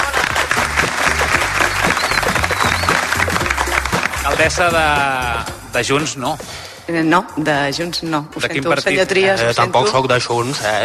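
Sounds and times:
audience applauding: 0.0s - 5.4s
speech: 4.4s - 10.8s.

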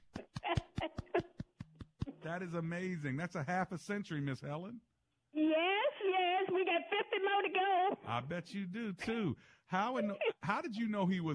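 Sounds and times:
one person clapping hands: 0.0s - 2.2s
speech: 2.2s - 5.8s, 6.7s - 11.3s.

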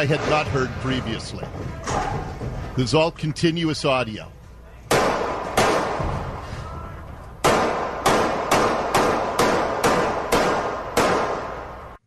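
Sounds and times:
speech: 0.0s - 4.4s
gunshots: 4.9s - 6.4s, 7.4s - 11.8s.

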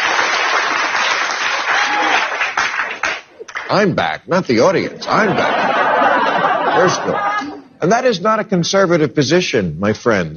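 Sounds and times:
crowd applauding: 0.0s - 3.8s
speech: 3.7s - 5.7s, 6.7s - 10.3s
laughter: 4.8s - 7.6s.

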